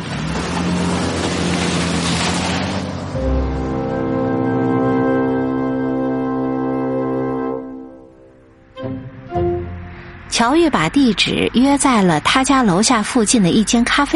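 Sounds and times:
car engine rumble: 0:00.0 - 0:06.3
broadband road noise: 0:00.0 - 0:14.1
speech: 0:10.4 - 0:14.1.

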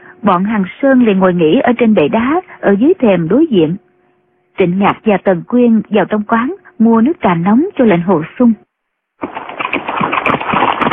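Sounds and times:
speech: 0:00.2 - 0:03.8, 0:04.6 - 0:08.6
horse hooves galloping on road: 0:09.2 - 0:10.9.

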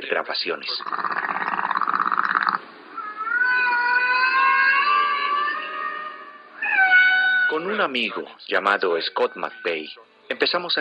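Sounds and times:
speech: 0:00.0 - 0:01.1, 0:07.5 - 0:10.8
humpback whale song: 0:01.4 - 0:07.5.

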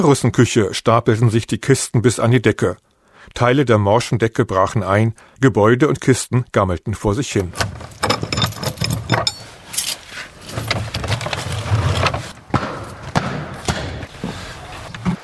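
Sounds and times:
speech: 0:00.0 - 0:08.0
keys unlocking a door: 0:07.4 - 0:12.2.

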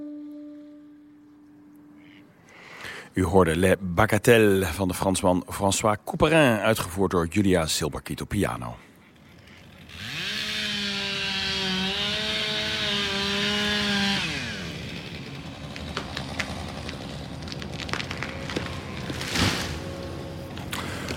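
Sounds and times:
speech: 0:03.2 - 0:08.9
chainsaw felling poplar trees: 0:09.1 - 0:21.1
crackling, snapping and rustling of wood: 0:13.2 - 0:21.1.

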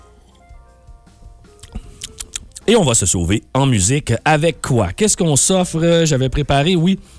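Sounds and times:
person taking a sip of beer: 0:01.6 - 0:02.6
speech: 0:02.7 - 0:07.1.

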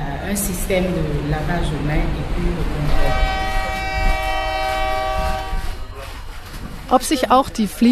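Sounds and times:
train at a station: 0:00.0 - 0:07.8
speech: 0:00.3 - 0:03.2, 0:06.9 - 0:07.8
train horn: 0:02.9 - 0:06.2.

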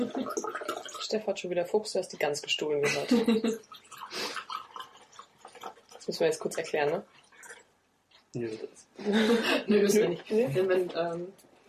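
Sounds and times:
speech: 0:00.0 - 0:00.4, 0:01.0 - 0:04.3, 0:06.1 - 0:07.2, 0:08.4 - 0:11.4
wine pouring from a freshly opened bottle: 0:00.0 - 0:01.4, 0:03.6 - 0:07.7.

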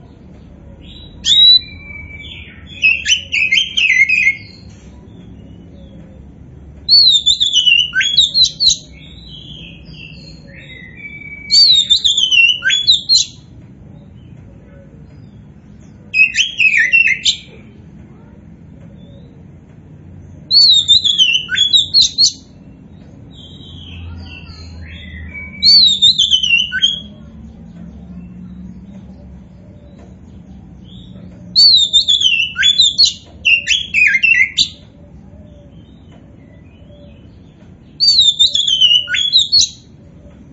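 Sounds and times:
faint hum: 0:00.0 - 0:40.5
Oriental magpie-robin whistling song: 0:00.9 - 0:04.7, 0:06.9 - 0:13.4, 0:16.1 - 0:17.5, 0:20.5 - 0:22.6, 0:23.3 - 0:27.3, 0:30.8 - 0:34.9, 0:35.8 - 0:39.9.

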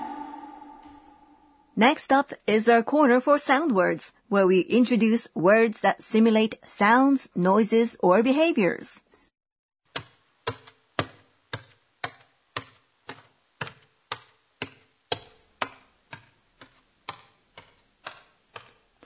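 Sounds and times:
speech: 0:01.8 - 0:09.1
footsteps going up stairs: 0:12.6 - 0:19.0.

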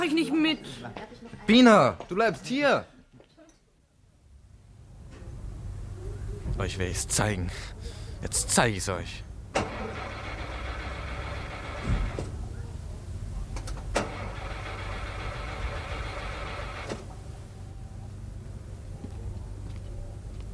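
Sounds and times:
speech: 0:00.0 - 0:02.9, 0:06.6 - 0:10.1
car engine starting and settling into a steady low rumble: 0:09.5 - 0:12.7, 0:13.5 - 0:17.5.

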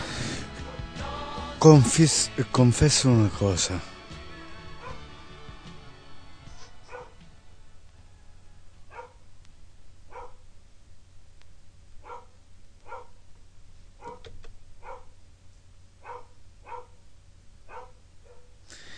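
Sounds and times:
speech: 0:01.6 - 0:03.9
dogs barking in the background: 0:04.8 - 0:05.1, 0:06.8 - 0:07.2, 0:08.9 - 0:09.2, 0:10.1 - 0:10.4, 0:12.0 - 0:13.2, 0:14.0 - 0:15.2, 0:16.0 - 0:17.0, 0:17.7 - 0:18.6.

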